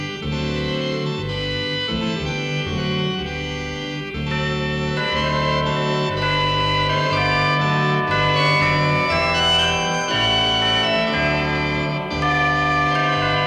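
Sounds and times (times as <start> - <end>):
Christmas organ music: 0.0 - 13.4
Christmas chimes: 4.3 - 13.4.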